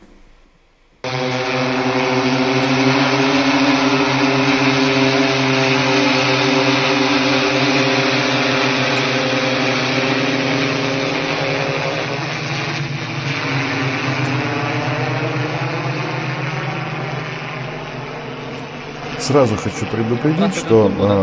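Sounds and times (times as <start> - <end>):
drone buzzing while lifting tires: 0.0 - 21.2
speech: 19.3 - 21.2.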